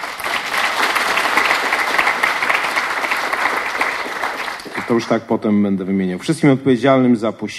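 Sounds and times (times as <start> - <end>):
audience applause: 0.0 - 5.2
speech: 4.9 - 7.5.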